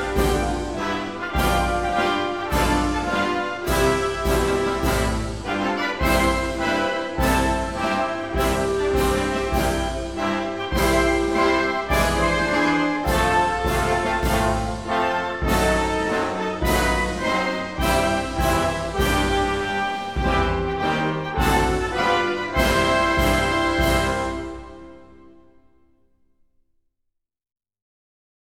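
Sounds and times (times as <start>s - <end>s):
instrumental marching song: 0.0s - 25.2s.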